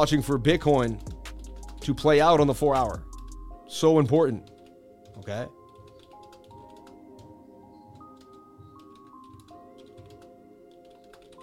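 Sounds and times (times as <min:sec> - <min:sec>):
speech: 0:00.0 - 0:01.1, 0:01.8 - 0:03.1, 0:03.7 - 0:04.5, 0:05.2 - 0:05.6
fingers typing on a computer keyboard: 0:04.4 - 0:11.4.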